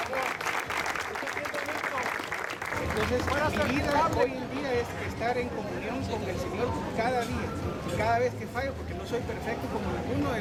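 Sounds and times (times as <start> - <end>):
audience applause: 0.0 - 4.3
speech: 3.0 - 10.3.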